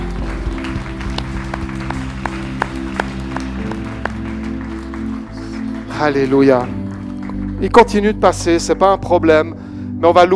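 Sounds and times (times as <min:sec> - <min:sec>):
sustained instrumental tones: 0:00.0 - 0:08.2
church congregation clapping during a morning worship service: 0:00.0 - 0:09.0
speech: 0:06.0 - 0:06.8, 0:07.6 - 0:10.3.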